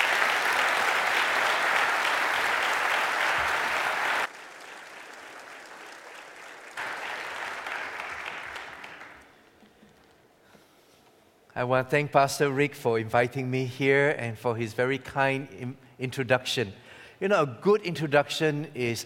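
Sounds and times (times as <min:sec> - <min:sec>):
audience applause welcoming a guest speaker at Calvary Baptist Church: 0:00.0 - 0:09.7
speech: 0:11.6 - 0:19.0.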